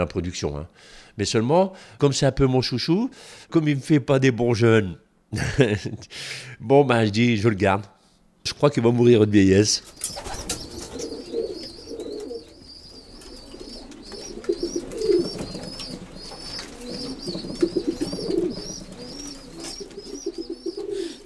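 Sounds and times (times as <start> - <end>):
speech: 0.0 - 10.4
crowd of pigeons cooing in a loft: 9.8 - 21.2.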